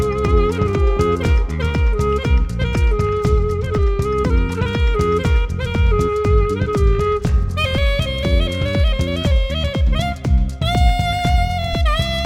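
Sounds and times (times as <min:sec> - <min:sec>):
saxophone: 0:00.0 - 0:12.2.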